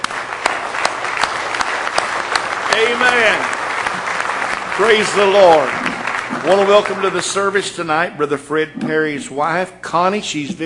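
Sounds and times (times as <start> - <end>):
church congregation clapping in praise: 0.0 - 8.1
speech: 4.8 - 10.6.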